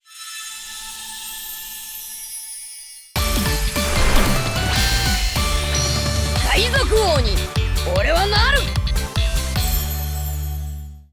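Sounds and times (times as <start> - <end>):
background music: 3.2 - 11.0
sound effects: 3.4 - 6.0.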